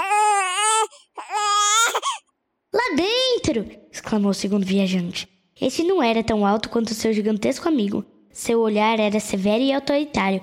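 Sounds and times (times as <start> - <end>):
infant crying: 0.0 - 2.2
speech: 3.0 - 10.4.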